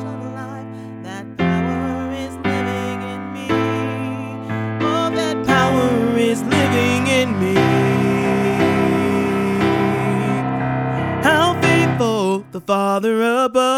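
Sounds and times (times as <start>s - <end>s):
tenor singing lead: 0.0s - 13.7s
Christmas choir singing: 4.8s - 12.1s.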